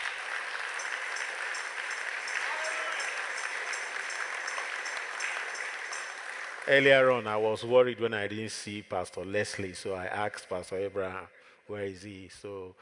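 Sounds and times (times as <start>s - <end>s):
audience clapping: 0.0s - 7.8s
speech: 6.7s - 12.8s.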